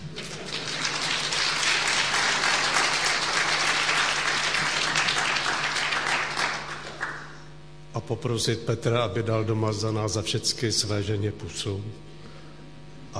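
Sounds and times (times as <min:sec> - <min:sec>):
audience clapping: 0:00.0 - 0:07.5
speech: 0:08.0 - 0:12.1.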